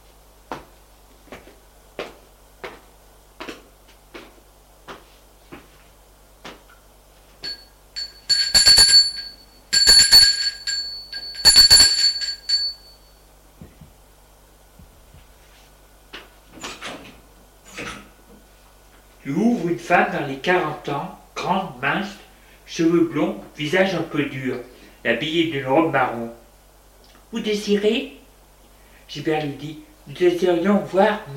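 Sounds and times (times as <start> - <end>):
doorbell ringing: 7.4 - 13.2
speech: 19.3 - 26.4, 27.3 - 28.2, 29.1 - 31.3.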